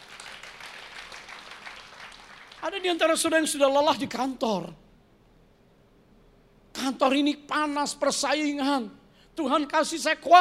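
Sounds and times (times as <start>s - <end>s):
audience applause: 0.0s - 2.6s
speech: 2.6s - 4.8s, 6.9s - 10.3s.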